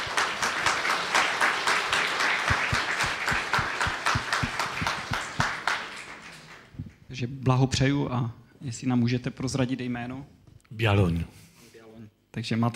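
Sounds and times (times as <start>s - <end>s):
audience applause: 0.0s - 6.8s
speech: 7.2s - 11.4s, 12.4s - 12.7s.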